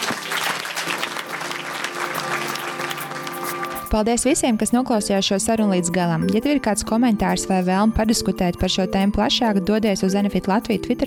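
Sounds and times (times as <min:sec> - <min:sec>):
audience applause: 0:00.0 - 0:03.9
speech: 0:03.9 - 0:11.0.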